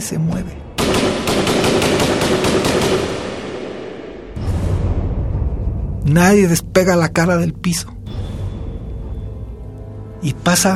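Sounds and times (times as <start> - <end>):
speech: 0.0 - 1.1, 6.1 - 8.0, 10.2 - 10.7
burst of machine gun fire: 0.8 - 4.4
dull blast: 0.8 - 6.0.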